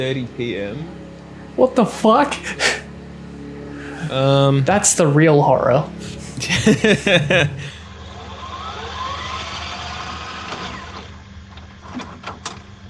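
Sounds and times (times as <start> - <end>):
speech: 0.0 - 1.0, 1.6 - 2.8, 4.0 - 7.8
lawnmower running outside: 0.0 - 12.8
laughter: 2.3 - 2.8, 6.2 - 7.9.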